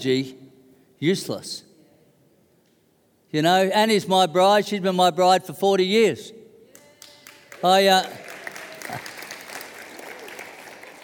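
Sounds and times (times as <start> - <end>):
speech: 0.0 - 0.4, 1.0 - 1.7, 3.3 - 6.4, 7.6 - 8.2, 8.9 - 9.1
audience clapping: 6.7 - 11.0.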